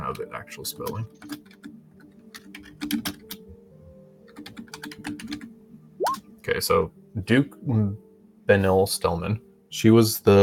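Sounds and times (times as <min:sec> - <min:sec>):
speech: 0:00.1 - 0:01.7, 0:02.8 - 0:03.2, 0:06.5 - 0:10.4
computer keyboard typing: 0:01.1 - 0:01.7, 0:02.3 - 0:03.4, 0:04.3 - 0:05.5.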